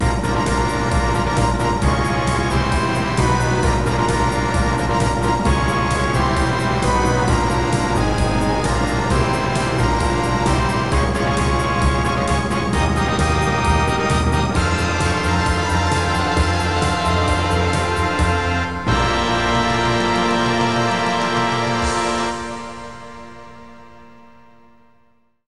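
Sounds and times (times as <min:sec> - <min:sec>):
gala fanfare: 0:00.0 - 0:24.4.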